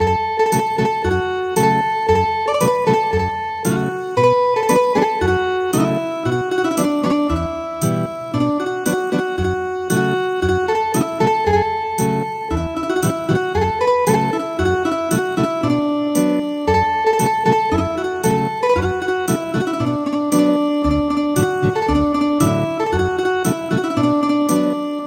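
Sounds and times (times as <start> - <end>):
ethnic guitar music: 0.0 - 25.0.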